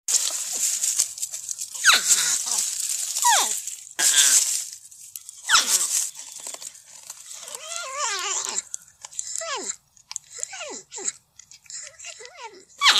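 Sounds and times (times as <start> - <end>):
porcupine squeals: 1.8 - 2.6, 3.2 - 4.4, 5.5 - 6.6, 7.3 - 8.7, 10.4 - 12.9.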